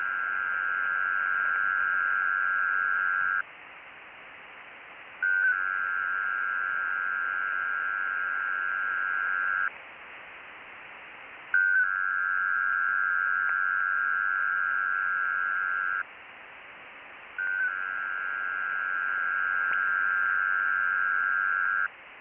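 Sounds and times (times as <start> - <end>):
WINMOR 500Hz 4PSK 93-75Bd digital radio data signal: 0.0 - 3.4, 5.2 - 9.7, 11.6 - 16.0, 17.4 - 21.9.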